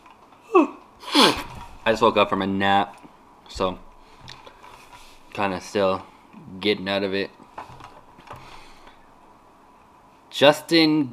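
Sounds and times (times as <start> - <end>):
person yawning: 0.4 - 1.5
speech: 1.8 - 3.9, 5.4 - 7.4, 10.4 - 11.1.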